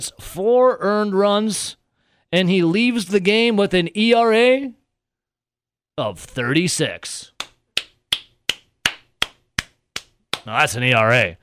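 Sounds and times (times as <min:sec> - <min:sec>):
speech: 0:00.0 - 0:04.8, 0:06.0 - 0:07.4, 0:10.4 - 0:11.4
one person clapping: 0:07.4 - 0:10.6.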